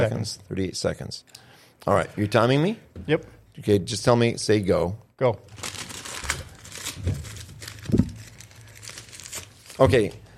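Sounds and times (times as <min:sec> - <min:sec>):
speech: 0:00.0 - 0:05.7, 0:09.8 - 0:10.2
paper airplane being folded and creased: 0:05.5 - 0:10.2.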